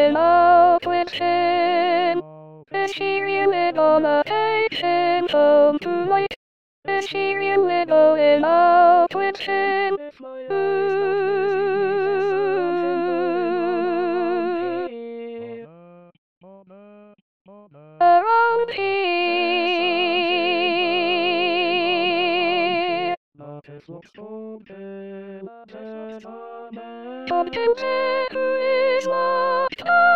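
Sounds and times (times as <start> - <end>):
soprano singing: 0.0 - 2.2, 2.8 - 15.0, 18.0 - 23.2, 26.2 - 30.1.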